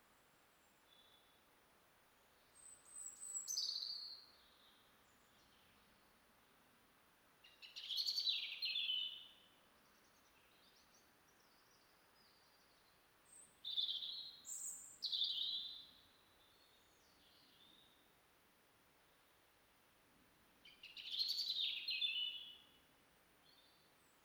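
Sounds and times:
European robin singing: 2.5 - 4.7, 7.4 - 9.4, 10.2 - 18.0, 20.6 - 22.8.

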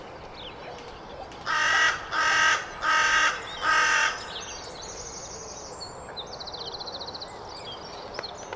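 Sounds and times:
carrion crow Corvus corone giving loud harsh even caws: 1.5 - 4.3.

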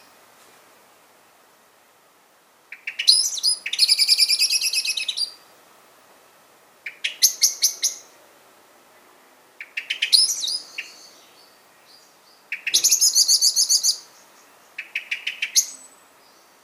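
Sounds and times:
common blackbird Turdus merula giving sharp metallic chink calls: 2.7 - 5.4, 6.8 - 8.2, 9.6 - 16.6.

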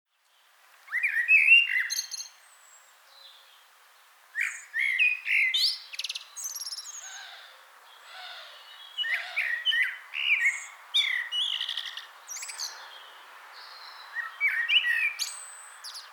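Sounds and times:
Common blackbird Turdus merula singing rich whistled phrases: 0.9 - 2.5, 4.4 - 16.1.

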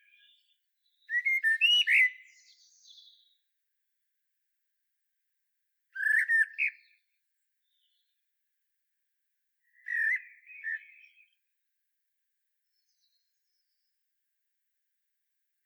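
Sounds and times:
common blackbird song: 0.0 - 3.3, 6.0 - 6.9, 9.7 - 11.4.

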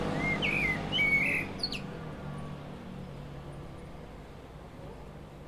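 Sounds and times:
common blackbird Turdus merula song: 0.1 - 2.0.

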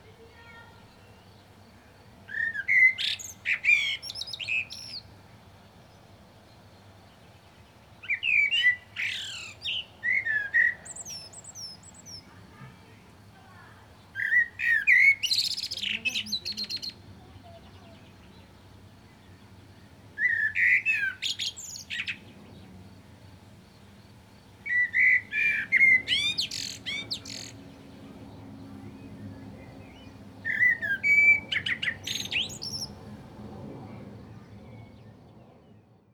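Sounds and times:
common blackbird song: 0.0 - 36.1.

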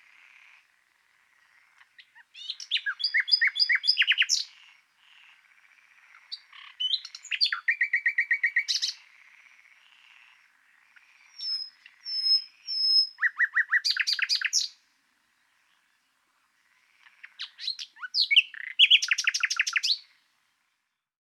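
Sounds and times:
common nightingale Luscinia megarhynchos singing: 1.7 - 4.7, 6.0 - 9.1, 10.6 - 16.2, 17.1 - 20.2.

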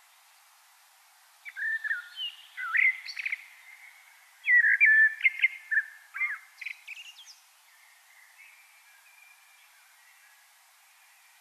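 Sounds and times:
steady background hiss: 0.0 - 11.3
common blackbird singing: 1.4 - 10.4.

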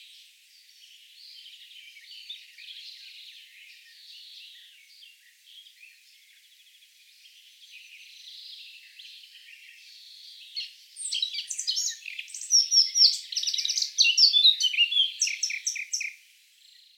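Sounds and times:
Eurasian blackcap warbling song: 10.6 - 16.9.

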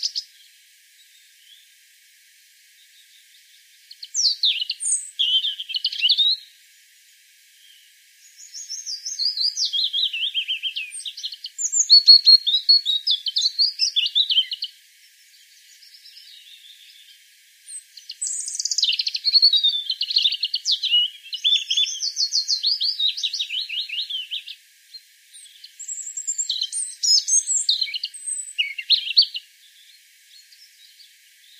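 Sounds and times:
European robin song: 0.0 - 1.8, 2.7 - 6.6, 7.6 - 31.5.

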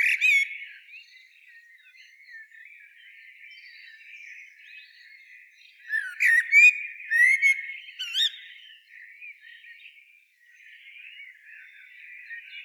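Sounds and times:
common blackbird Turdus merula song phrases: 0.0 - 12.6.

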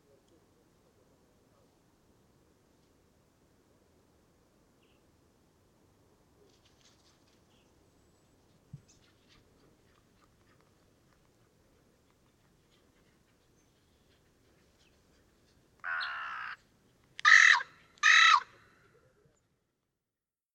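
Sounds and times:
Corvus corone calling: 15.8 - 16.6, 17.2 - 18.8.

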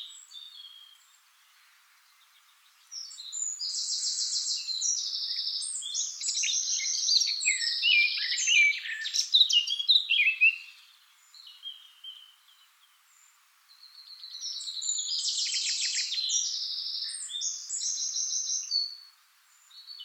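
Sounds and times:
Eurasian blackcap Sylvia atricapilla warbling song with buzzy trills: 0.0 - 20.0.

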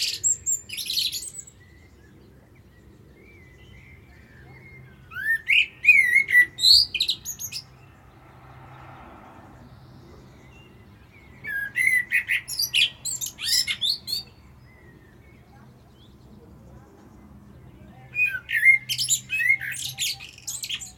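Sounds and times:
common blackbird song: 0.0 - 20.9
low rumble: 7.7 - 10.6.

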